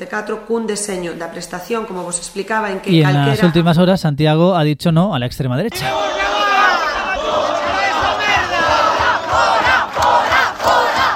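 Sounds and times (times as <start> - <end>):
speech: 0.0 - 6.3
large protest crowd chanting and shouting: 5.8 - 11.1
steady low thumping beat: 7.4 - 11.1.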